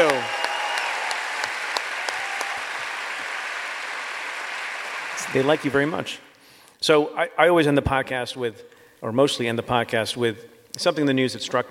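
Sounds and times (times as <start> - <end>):
audience applause: 0.0 - 6.0
speech: 5.3 - 11.6.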